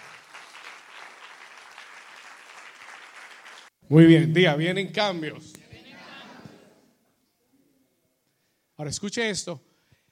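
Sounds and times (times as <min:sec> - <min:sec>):
audience applauding loudly: 0:00.0 - 0:03.7
speech: 0:03.9 - 0:05.6, 0:08.8 - 0:09.7.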